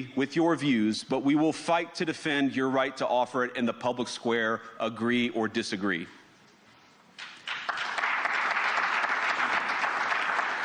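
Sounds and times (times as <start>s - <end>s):
speech: 0.0s - 6.2s
tepid audience applause: 7.2s - 10.6s.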